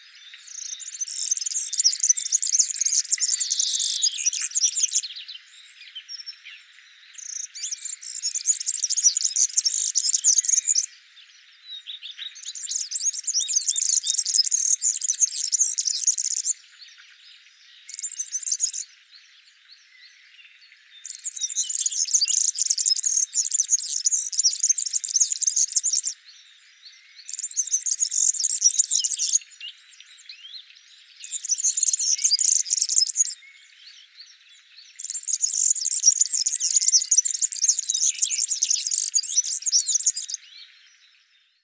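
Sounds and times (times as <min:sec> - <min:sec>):
Serinus serinus singing: 0:00.0 - 0:41.6.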